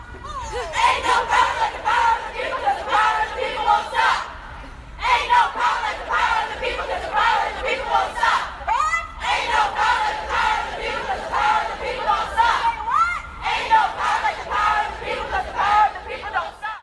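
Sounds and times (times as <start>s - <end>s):
chanting: 0.5s - 16.8s.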